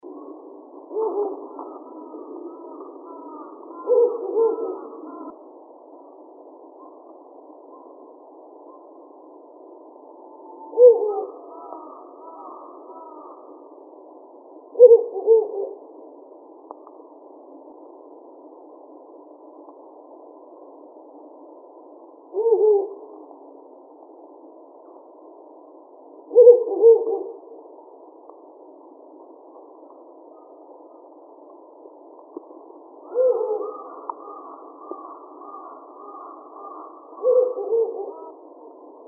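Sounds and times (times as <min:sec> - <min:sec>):
Ural owl hooting: 0:00.2 - 0:05.4, 0:09.9 - 0:13.7, 0:14.7 - 0:15.9, 0:22.3 - 0:23.3, 0:26.2 - 0:27.7, 0:33.0 - 0:38.8
speech: 0:01.0 - 0:01.9.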